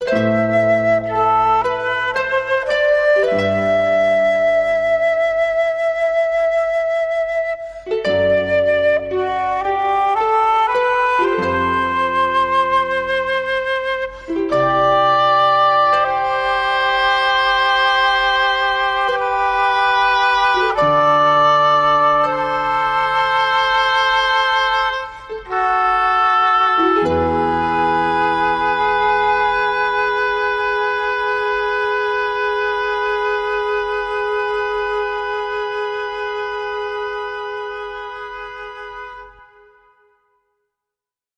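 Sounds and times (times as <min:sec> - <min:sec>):
harp: 0:00.0 - 0:40.3
woodwinds: 0:00.0 - 0:40.3.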